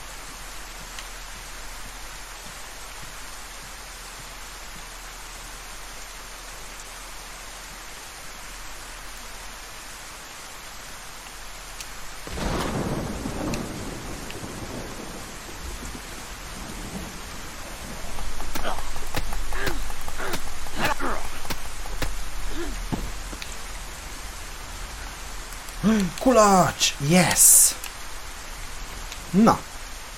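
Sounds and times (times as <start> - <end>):
steady hissing rain: 0.0 - 30.1
loud rumble of thunder: 12.2 - 20.1
speech: 25.9 - 27.8, 29.3 - 29.7.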